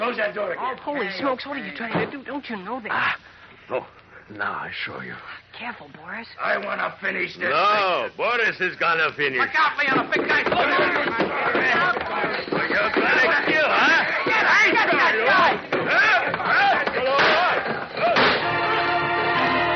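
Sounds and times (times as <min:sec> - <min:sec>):
speech: 0:00.0 - 0:16.1
chair smashing: 0:09.8 - 0:19.6.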